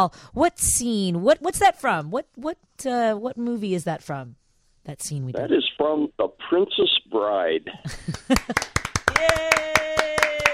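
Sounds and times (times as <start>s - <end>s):
speech: 0.0s - 10.5s
one person clapping: 8.0s - 10.5s.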